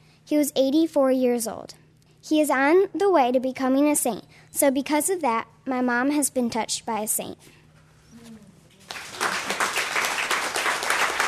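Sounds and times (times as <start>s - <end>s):
speech: 0.3s - 7.6s
audience applause after a reading at Left Bank Books: 8.8s - 11.2s.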